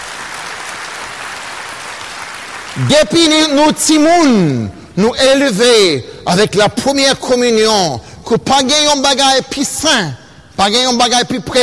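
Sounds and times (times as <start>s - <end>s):
congregation applauding in church during a first communion service: 0.0s - 4.0s
speech: 2.8s - 11.6s.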